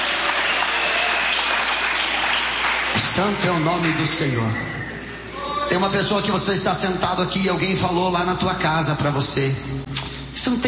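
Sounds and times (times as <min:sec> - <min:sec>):
audience clapping: 0:00.0 - 0:04.5
speech: 0:03.1 - 0:04.8, 0:05.7 - 0:10.6.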